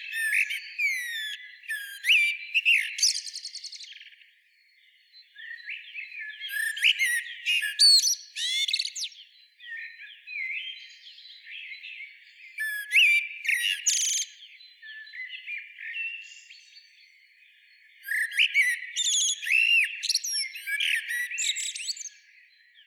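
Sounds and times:
common blackbird singing: 0.0s - 22.8s.

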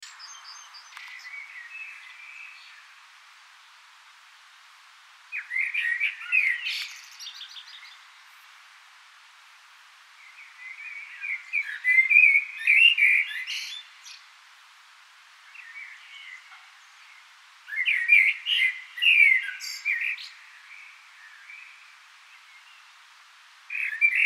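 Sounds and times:
common blackbird singing: 0.0s - 2.9s, 5.3s - 8.4s, 10.2s - 14.2s, 15.5s - 22.9s, 23.7s - 24.2s
soft background hiss: 0.0s - 24.2s.

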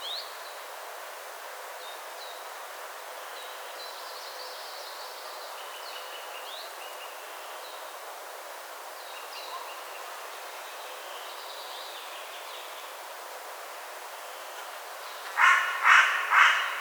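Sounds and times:
Carrion crow Corvus corone cawing: 15.2s - 16.7s.

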